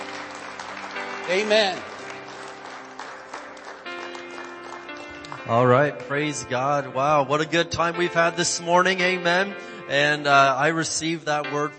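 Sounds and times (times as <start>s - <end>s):
audience hand clapping: 0.0s - 6.1s
speech: 1.3s - 1.9s, 5.4s - 11.7s.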